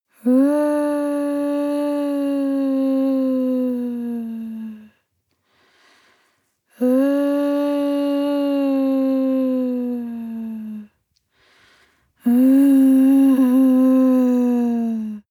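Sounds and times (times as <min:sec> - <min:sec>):
woman moaning and whining softly: 0:00.1 - 0:05.0, 0:06.8 - 0:11.0, 0:12.2 - 0:15.2.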